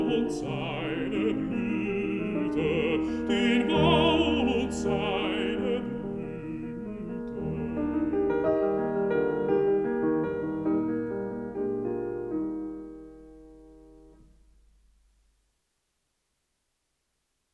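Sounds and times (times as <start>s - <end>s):
person singing: 0.0s - 8.4s
piano: 0.0s - 15.4s.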